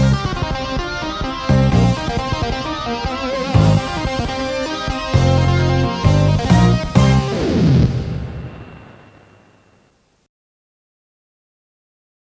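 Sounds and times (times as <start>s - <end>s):
guitar playing a B3 note: 0.2s - 9.7s.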